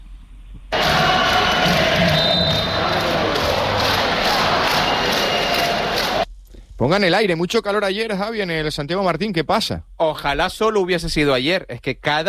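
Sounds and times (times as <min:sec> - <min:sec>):
fans chanting at a basketball game in the Santiago Martín pavilion: 0:00.7 - 0:06.2
speech: 0:06.8 - 0:12.2.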